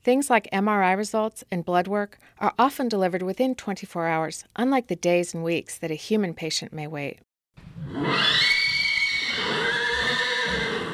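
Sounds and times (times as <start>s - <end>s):
speech: 0.0s - 8.4s
chestnut mare and stallions whinnying at Lane's End Farm near Lexington: 7.6s - 10.9s.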